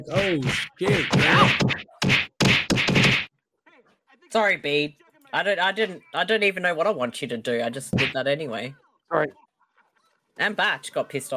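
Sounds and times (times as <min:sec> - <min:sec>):
speech: 0:00.0 - 0:01.8, 0:04.3 - 0:09.4, 0:10.4 - 0:11.3
punches landing as heavy dull thwacks: 0:00.0 - 0:03.3, 0:07.9 - 0:08.2.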